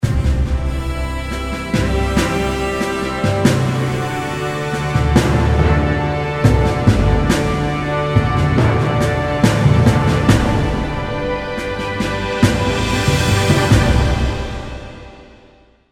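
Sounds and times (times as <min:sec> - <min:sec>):
victory music: 0:00.0 - 0:15.8.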